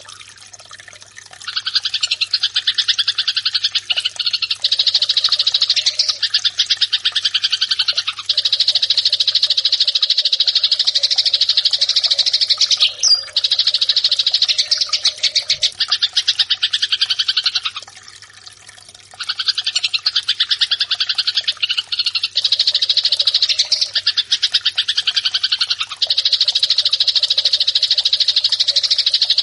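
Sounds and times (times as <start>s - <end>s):
Eurasian tree sparrow fighting call: 1.5s - 17.8s, 19.2s - 29.4s.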